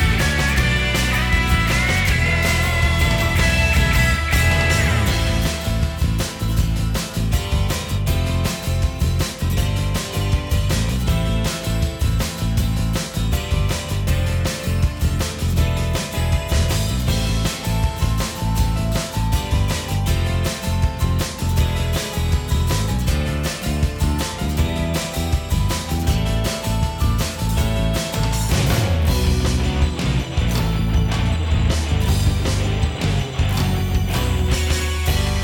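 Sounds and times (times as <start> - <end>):
instrumental music without vocals: 0.0 - 35.4.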